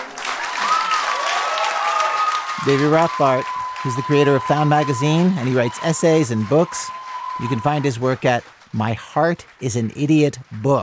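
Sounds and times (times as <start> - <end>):
people applauding: 0.0 - 10.8
people whistling: 1.9 - 8.4
people calling out: 2.5 - 8.3
speech: 2.6 - 10.8.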